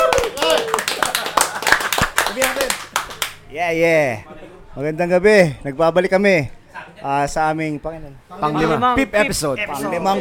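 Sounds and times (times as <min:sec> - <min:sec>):
voices shouting and cheering: 0:00.0 - 0:00.9
audience clapping: 0:00.0 - 0:03.4
speech: 0:03.6 - 0:10.2.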